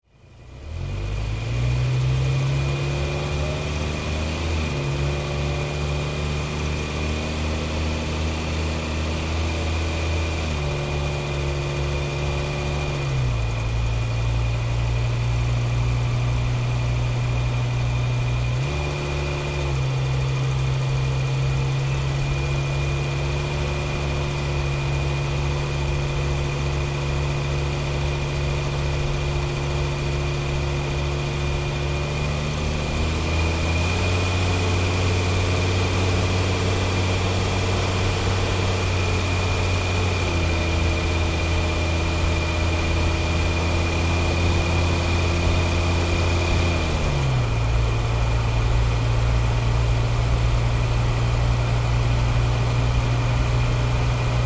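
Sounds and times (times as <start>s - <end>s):
Dodge Ram engine and tailpipe while driving at medium speed: 0.0s - 54.4s.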